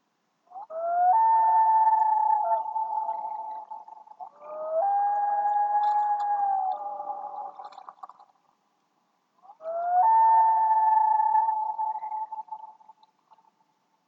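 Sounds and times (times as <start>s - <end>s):
black-throated loon calling: 0.5s - 7.6s, 9.4s - 12.7s.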